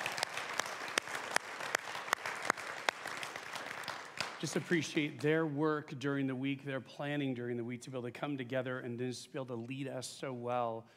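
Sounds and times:
church congregation applause for the worship team: 0.0s - 5.3s
speech: 4.4s - 10.9s.

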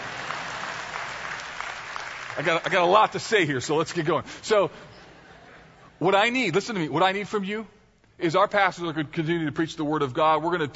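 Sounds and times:
audience clapping: 0.0s - 4.2s
speech: 2.4s - 4.9s, 6.0s - 10.7s.

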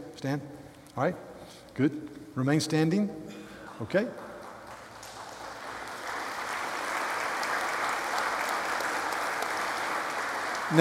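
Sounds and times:
speech: 0.2s - 4.2s
audience applause: 4.2s - 10.7s.

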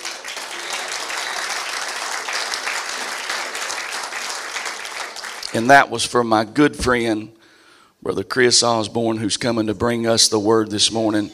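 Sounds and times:
large audience clapping in praise: 0.0s - 5.7s
speech: 5.5s - 7.4s, 8.0s - 11.3s.

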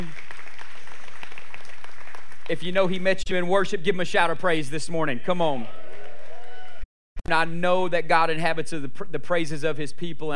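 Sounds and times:
audience applause: 0.0s - 2.6s
speech: 2.5s - 5.8s, 7.3s - 10.3s.

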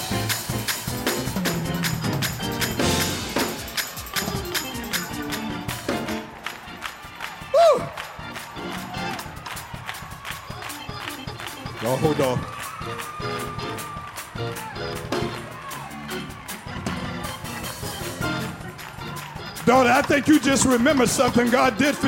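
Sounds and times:
audience clapping: 0.0s - 22.0s
scattered cheers and a high whoop: 7.2s - 10.7s, 12.4s - 17.4s
speech: 11.9s - 12.6s, 19.7s - 22.0s.

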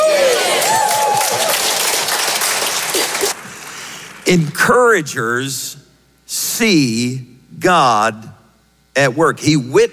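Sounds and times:
church crowd cheering and whooping: 0.0s - 3.5s
church crowd applauding: 0.0s - 4.3s
speech: 4.3s - 8.3s, 9.0s - 9.9s.

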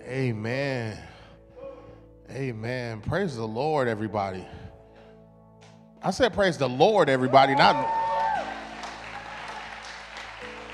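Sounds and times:
speech: 0.1s - 1.1s, 2.3s - 4.6s, 6.0s - 8.0s
audience cheering: 7.2s - 10.7s
high whoop: 7.3s - 9.8s.

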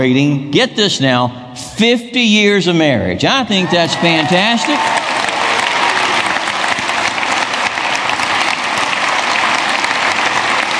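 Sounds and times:
speech: 0.0s - 5.0s
crowd applauding: 3.5s - 10.7s.

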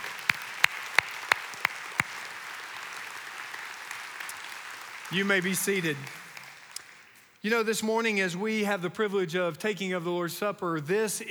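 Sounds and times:
hand claps: 0.0s - 7.8s
speech: 5.1s - 6.2s, 7.4s - 11.3s.

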